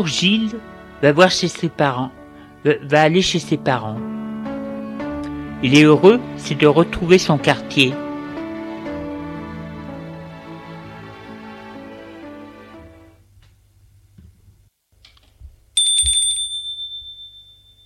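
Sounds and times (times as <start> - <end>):
speech: 0.0 - 4.1, 5.6 - 8.0
doorbell ringing: 15.8 - 17.8.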